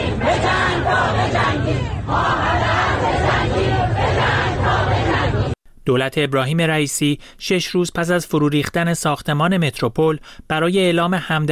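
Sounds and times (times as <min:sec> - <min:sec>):
large protest crowd chanting: 0:00.0 - 0:05.6
speech: 0:05.9 - 0:11.5.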